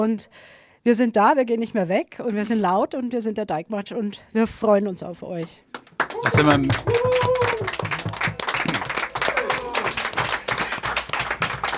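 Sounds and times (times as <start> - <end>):
speech: 0.0 - 7.8
crowd applauding: 5.7 - 11.7
cheering voices and whoops: 6.1 - 10.8.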